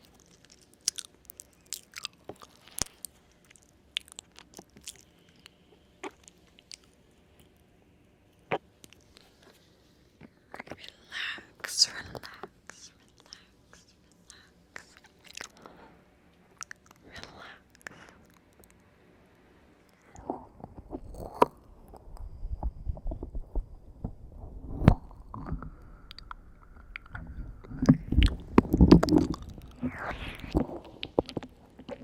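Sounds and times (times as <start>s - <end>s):
ear noms chewing and biting: 0.0s - 7.0s, 14.8s - 15.6s, 26.1s - 32.0s
faint low hum: 0.0s - 32.0s.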